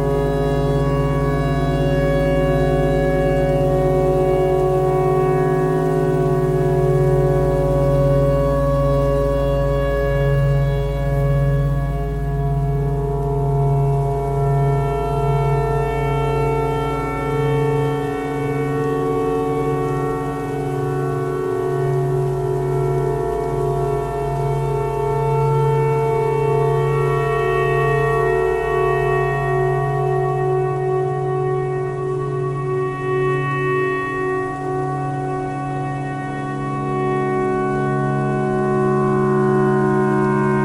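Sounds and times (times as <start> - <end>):
clarinet playing pentatonic: 0.0 - 40.6
tornado siren: 0.0 - 40.6.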